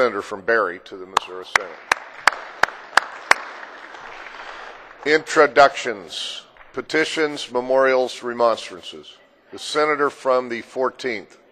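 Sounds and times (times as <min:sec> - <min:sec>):
speech: 0:00.0 - 0:02.0, 0:05.0 - 0:11.4
sharp claps: 0:01.2 - 0:05.2
applause: 0:01.2 - 0:05.4.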